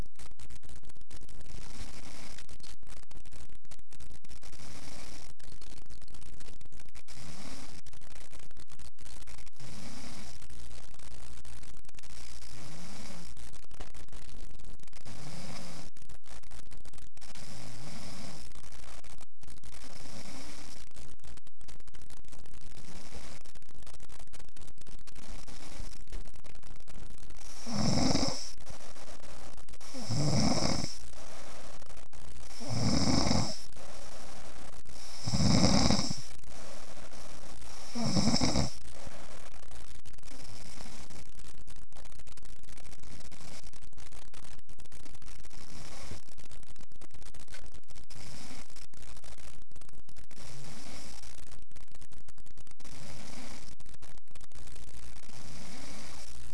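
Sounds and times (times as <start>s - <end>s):
snoring: 4.6s - 5.2s, 7.1s - 7.8s, 9.6s - 10.4s, 12.1s - 13.3s, 15.0s - 15.9s, 17.2s - 18.4s, 19.8s - 20.8s, 27.4s - 28.7s, 29.8s - 31.6s, 32.4s - 33.7s, 34.9s - 36.7s, 37.6s - 38.8s, 45.6s - 46.2s, 48.1s - 48.7s, 50.4s - 51.3s, 52.9s - 53.6s, 55.3s - 56.3s.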